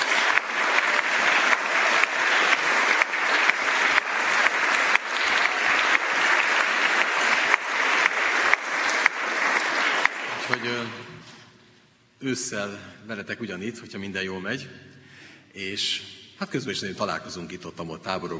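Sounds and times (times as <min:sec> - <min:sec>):
audience applause: 0:00.0 - 0:11.1
speech: 0:12.2 - 0:14.9, 0:15.6 - 0:18.3.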